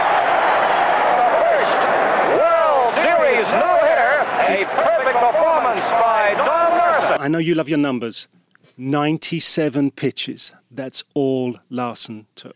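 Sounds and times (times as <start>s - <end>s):
stadium crowd roaring after perfect game: 0.0s - 7.3s
speech: 7.3s - 12.5s.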